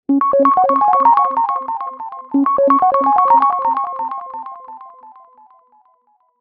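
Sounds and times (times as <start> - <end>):
SMS ringtone: 0.1 - 4.4.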